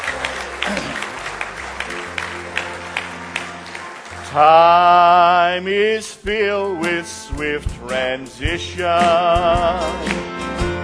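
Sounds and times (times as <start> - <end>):
audience hand clapping: 0.0 - 6.0
speech: 4.4 - 10.2.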